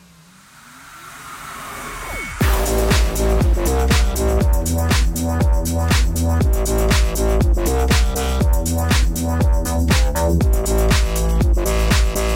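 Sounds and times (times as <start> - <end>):
bass purr: 2.4 - 12.3.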